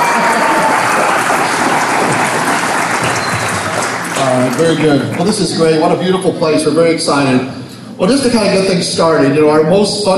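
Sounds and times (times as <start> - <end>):
crowd applause: 0.0 - 6.0
speech: 4.4 - 10.1.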